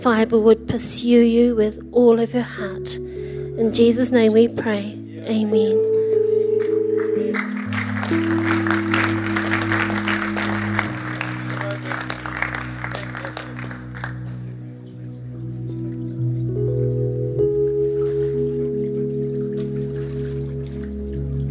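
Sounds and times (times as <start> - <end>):
speech: 0.0 - 6.0
sustained low keyboard chords: 0.0 - 21.5
audience clapping: 6.6 - 15.2.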